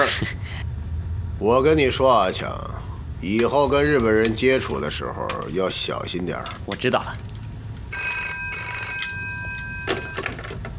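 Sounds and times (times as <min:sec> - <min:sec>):
low rumble: 0:00.0 - 0:08.0
speech: 0:01.4 - 0:07.3
telephone bell ringing: 0:07.9 - 0:10.5.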